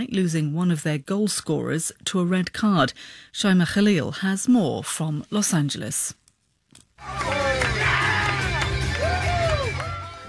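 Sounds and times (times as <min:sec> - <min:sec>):
speech: 0:00.0 - 0:06.2
fans cheering and chanting at a watch party: 0:07.0 - 0:10.2.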